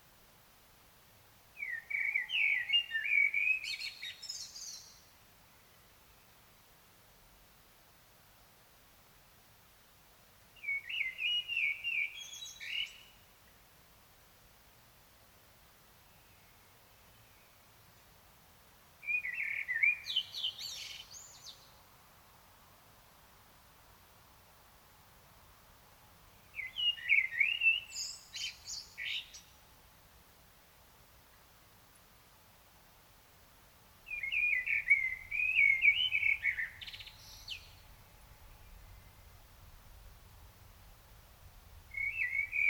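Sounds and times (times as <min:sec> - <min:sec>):
Common blackbird fluted song: 0:01.6 - 0:05.0, 0:10.6 - 0:13.2, 0:19.0 - 0:21.8, 0:26.5 - 0:29.6, 0:34.1 - 0:39.3, 0:41.9 - 0:42.6.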